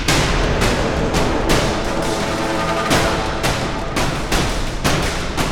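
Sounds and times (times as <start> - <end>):
musical stinger fill: 0.2 - 5.4.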